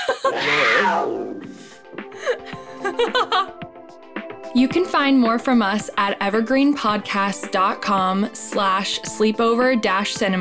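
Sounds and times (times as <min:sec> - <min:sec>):
laughter: 0:00.0 - 0:00.6, 0:02.2 - 0:03.5
roar sound effect: 0:00.3 - 0:01.6
speech: 0:00.3 - 0:01.6, 0:03.0 - 0:03.6, 0:04.5 - 0:10.3.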